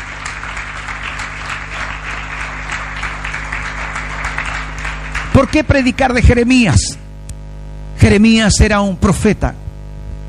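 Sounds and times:
audience applause: 0.0s - 6.0s
speech: 5.4s - 7.0s, 8.0s - 9.6s.

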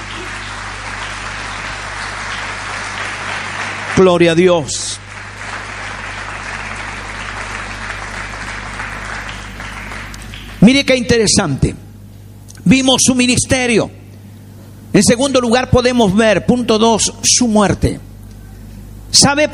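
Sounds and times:
audience applause: 0.0s - 10.9s
speech: 4.0s - 5.0s, 10.6s - 11.8s, 12.7s - 14.0s, 14.9s - 18.1s, 19.1s - 19.5s.

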